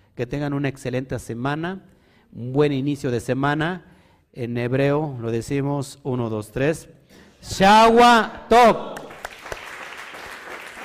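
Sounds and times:
speech: 0:00.2 - 0:09.0
loud applause: 0:09.0 - 0:10.8.

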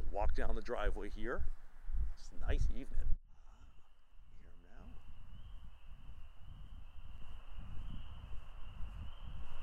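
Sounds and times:
speech: 0:00.2 - 0:01.6, 0:02.2 - 0:03.2
frogs calling at night: 0:03.5 - 0:09.4.

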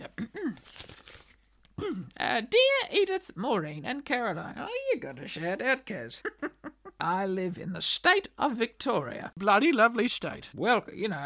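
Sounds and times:
paper letters rustling being handled: 0:00.5 - 0:01.8
speech: 0:02.3 - 0:11.2.

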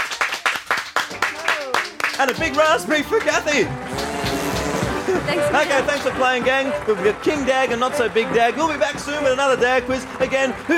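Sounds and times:
round of applause: 0:00.0 - 0:05.7
speech: 0:02.2 - 0:03.9, 0:05.1 - 0:10.7.

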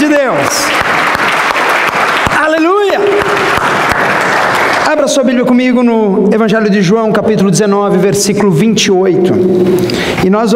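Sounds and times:
audience applause: 0:00.0 - 0:05.2
speech: 0:05.2 - 0:10.5.

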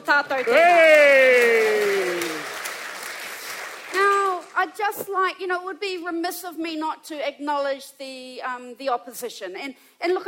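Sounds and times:
speech: 0:00.1 - 0:01.8, 0:04.6 - 0:10.2
audience applause: 0:00.2 - 0:04.6
person holding a drawn-out cheer: 0:00.5 - 0:02.5.

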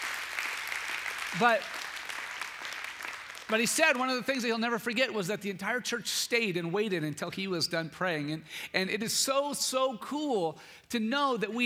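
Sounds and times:
audience clapping hands in praise: 0:00.0 - 0:04.4
speech: 0:01.3 - 0:01.8, 0:03.5 - 0:11.6.

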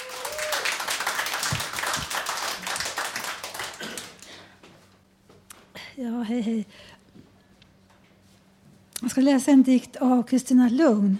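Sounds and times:
audience applause: 0:00.0 - 0:04.4
speech: 0:06.0 - 0:07.0, 0:09.2 - 0:11.1.

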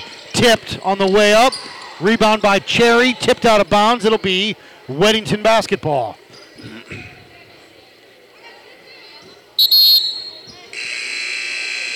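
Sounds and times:
crowd noise: 0:00.0 - 0:11.9
speech: 0:00.4 - 0:06.2
referee whistle blast at a basketball game: 0:09.6 - 0:10.5.

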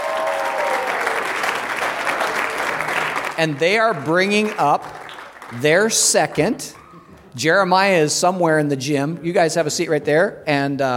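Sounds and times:
audience in a gym applauding to welcome a couple: 0:00.0 - 0:06.6
speech: 0:03.4 - 0:06.8, 0:07.4 - 0:10.9.

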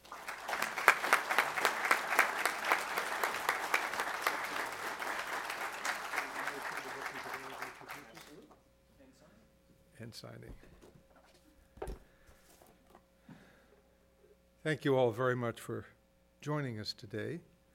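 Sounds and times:
audience applause welcoming a speaker to the stage: 0:00.0 - 0:08.4
speech: 0:10.2 - 0:10.9, 0:14.6 - 0:17.5.

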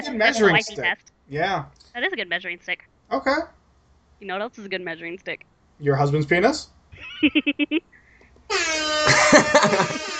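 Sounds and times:
speech: 0:00.1 - 0:03.6, 0:04.2 - 0:10.1
laughter: 0:07.0 - 0:07.8, 0:09.1 - 0:10.1
air horn sound effect: 0:08.5 - 0:10.1.

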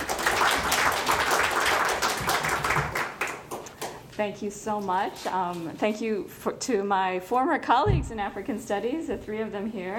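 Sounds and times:
audience applause welcoming a speaker at an academic talk: 0:00.0 - 0:04.0
speech: 0:04.2 - 0:09.9.

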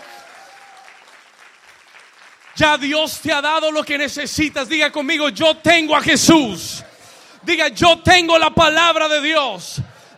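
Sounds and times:
audience applause: 0:00.0 - 0:02.9
speech: 0:02.6 - 0:09.8.

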